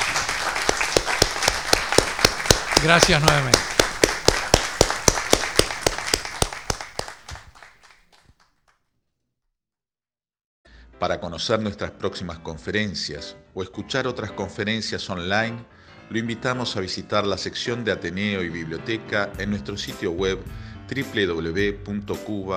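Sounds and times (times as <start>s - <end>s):
audience applause: 0.0s - 8.2s
speech: 2.8s - 3.7s, 11.0s - 22.5s.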